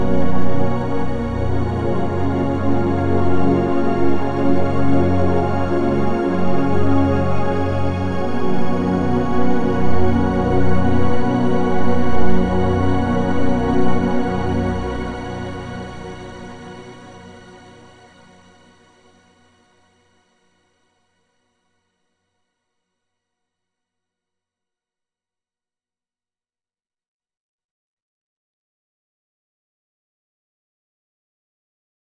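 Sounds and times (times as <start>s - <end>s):
mellow synth pad: 0.0s - 20.4s.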